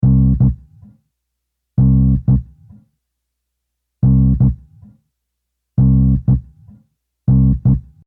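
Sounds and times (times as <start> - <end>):
bass: 0.0 - 1.0, 1.8 - 2.9, 4.0 - 5.0, 5.8 - 8.0.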